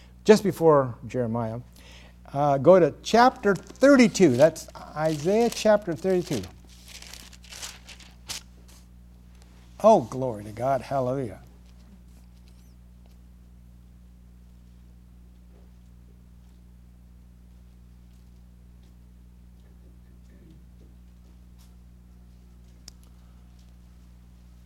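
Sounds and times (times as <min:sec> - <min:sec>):
speech: 0:00.2 - 0:06.6, 0:09.8 - 0:11.5
pages of books turning: 0:03.4 - 0:08.9.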